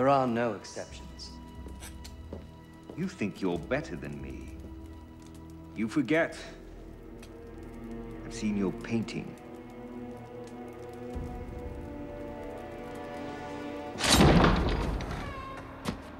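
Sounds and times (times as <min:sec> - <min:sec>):
speech: 0:00.0 - 0:01.4, 0:03.0 - 0:04.6, 0:05.8 - 0:06.6, 0:08.3 - 0:09.4
large heavy door opening with a loud rumble: 0:14.0 - 0:15.8.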